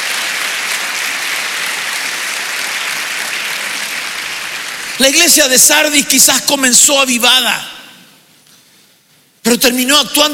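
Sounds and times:
audience clapping: 0.0s - 5.7s
speech: 5.0s - 7.8s, 9.5s - 10.3s.

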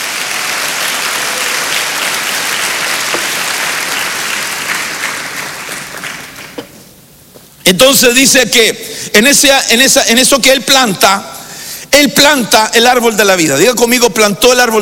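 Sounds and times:
audience clapping: 0.0s - 6.9s
speech: 7.7s - 11.3s, 12.0s - 14.7s.

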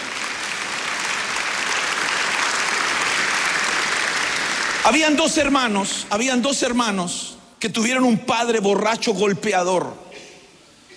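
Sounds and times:
applause: 0.0s - 5.8s
speech: 4.8s - 10.0s.

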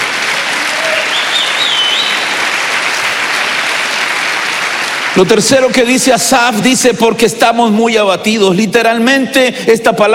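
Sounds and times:
audience clapping: 0.0s - 6.8s
speech: 5.2s - 10.1s.

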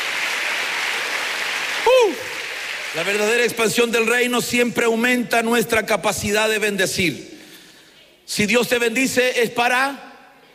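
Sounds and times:
audience clapping: 0.0s - 3.6s
person crying out: 1.8s - 2.3s
speech: 2.9s - 7.3s, 8.3s - 10.1s.

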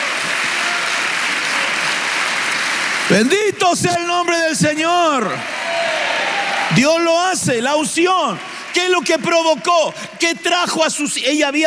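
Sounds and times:
audience applause: 0.0s - 10.1s
speech: 3.1s - 11.6s.

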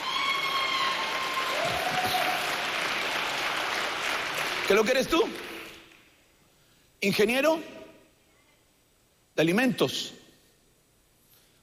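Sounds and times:
audience applause: 0.0s - 5.9s
speech: 4.7s - 5.5s, 7.0s - 7.8s, 9.4s - 10.2s.

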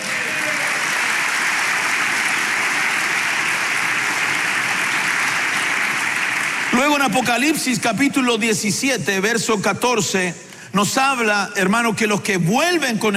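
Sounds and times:
audience applause: 0.0s - 7.8s
speech: 7.0s - 13.1s.

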